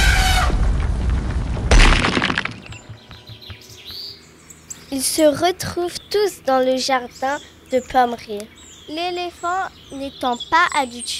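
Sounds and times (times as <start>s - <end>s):
explosion boom: 0.0s - 3.0s
crackling shattering debris: 0.4s - 3.1s
speech: 4.9s - 11.1s.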